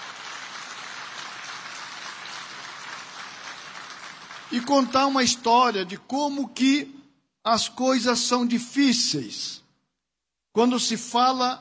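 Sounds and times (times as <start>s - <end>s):
applause: 0.0s - 5.5s
speech: 4.5s - 9.6s, 10.6s - 11.5s.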